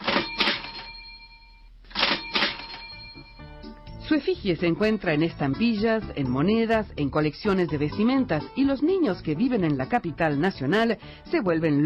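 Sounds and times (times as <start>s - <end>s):
cash register ringing: 0.0s - 3.5s
speech: 4.1s - 11.8s.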